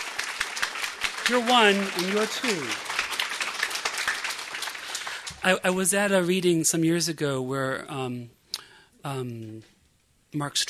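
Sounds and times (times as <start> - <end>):
audience at a poetry reading clapping: 0.0 - 6.1
speech: 1.3 - 2.9, 5.4 - 8.4, 9.0 - 9.7, 10.3 - 10.6.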